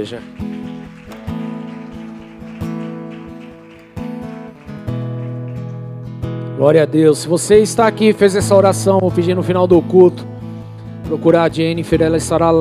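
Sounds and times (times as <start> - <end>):
speech: 0.0 - 0.5, 6.6 - 10.3, 11.1 - 12.5
church audience applauding: 0.0 - 6.3.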